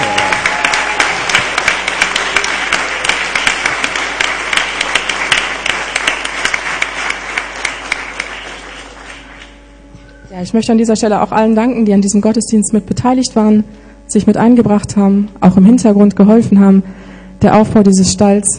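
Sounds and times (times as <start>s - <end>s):
audience applause: 0.0s - 9.6s
speech: 10.4s - 18.5s.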